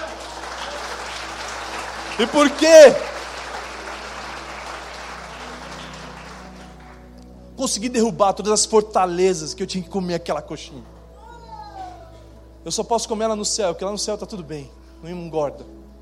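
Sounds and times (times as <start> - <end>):
audience applause: 0.0 - 7.0
speech: 2.2 - 3.1, 7.6 - 11.0, 12.6 - 15.8.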